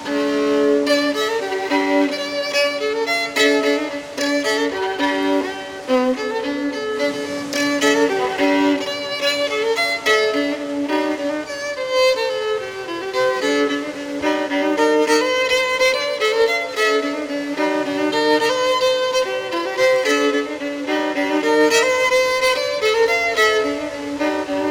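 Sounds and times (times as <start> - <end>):
violin playing in a cave: 0.0 - 24.6.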